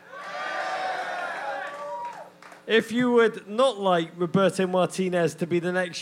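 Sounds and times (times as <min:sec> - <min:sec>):
audience cheering and shouting: 0:00.0 - 0:02.6
speech: 0:02.7 - 0:06.0.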